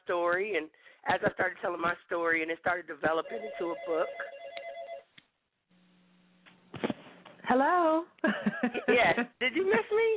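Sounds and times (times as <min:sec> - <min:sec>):
speech: 0:00.1 - 0:04.4, 0:07.5 - 0:10.1
telephone ringing: 0:03.0 - 0:05.1
laughter: 0:08.2 - 0:10.1.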